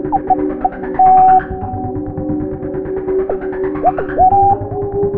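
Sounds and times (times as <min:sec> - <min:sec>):
hip-hop melody: 0:00.1 - 0:01.6, 0:03.3 - 0:05.0.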